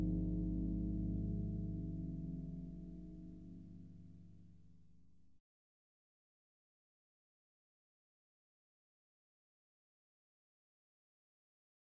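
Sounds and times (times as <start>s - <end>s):
instrumental harp praise music: 0.0s - 3.7s.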